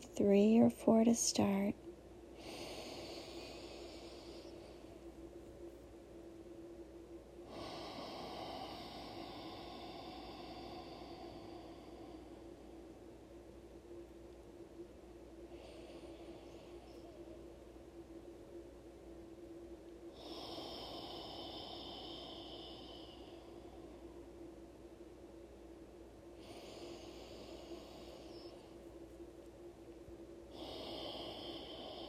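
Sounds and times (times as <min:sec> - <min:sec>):
low steady hiss: 0:00.0 - 0:32.0
speech: 0:00.2 - 0:01.8
forceful inhales and exhales in a breathwork exercise: 0:02.4 - 0:05.1, 0:07.4 - 0:13.0, 0:20.1 - 0:24.4, 0:26.3 - 0:28.9, 0:30.5 - 0:32.0.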